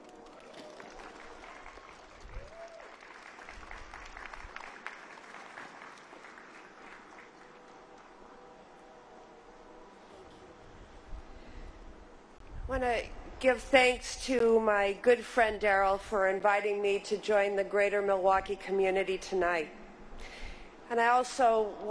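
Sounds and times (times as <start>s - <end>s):
audience applause at a Forward Latino community event in Milwaukee: 0.0s - 8.2s
speech: 12.8s - 19.8s, 20.9s - 21.8s.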